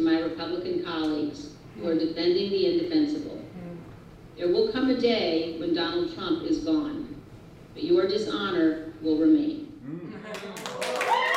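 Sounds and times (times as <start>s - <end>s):
speech: 0.3s - 3.5s, 4.4s - 7.1s, 7.8s - 9.6s
loud audience applause: 10.3s - 11.3s.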